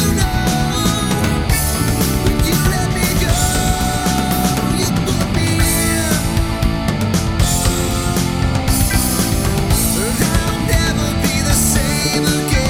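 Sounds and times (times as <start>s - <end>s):
karaoke full mix with harmony: 0.0s - 12.6s.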